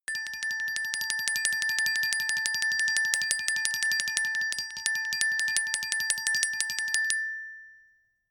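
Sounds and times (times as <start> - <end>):
glockenspiel tremolo in low octave: 0.0 - 8.0.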